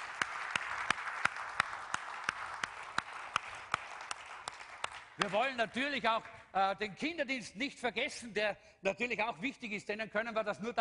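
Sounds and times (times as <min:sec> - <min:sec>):
audience applause for café team: 0:00.0 - 0:05.6
speech: 0:05.2 - 0:10.8.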